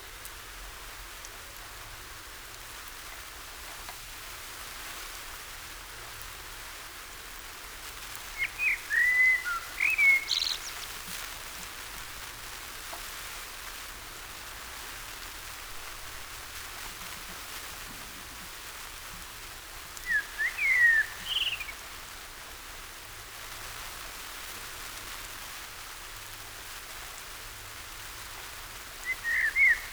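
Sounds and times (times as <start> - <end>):
common blackbird Turdus merula whistling: 8.4 - 10.9, 20.0 - 21.8, 29.0 - 29.9.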